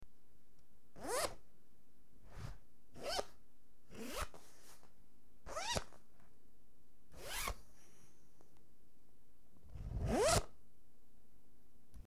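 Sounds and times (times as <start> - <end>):
zipper: 1.0 - 1.4, 2.3 - 4.9, 5.5 - 6.0, 7.2 - 7.6, 9.7 - 10.6.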